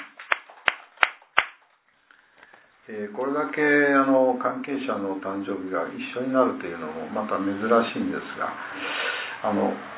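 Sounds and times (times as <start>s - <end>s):
hand claps for a birthday celebration: 0.0s - 1.7s
speech: 2.9s - 9.9s.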